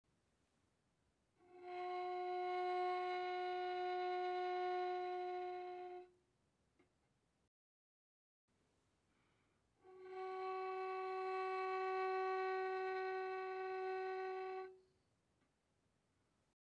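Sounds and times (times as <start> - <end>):
violin bowed softly on the G string: 1.4 - 6.1, 9.8 - 14.8.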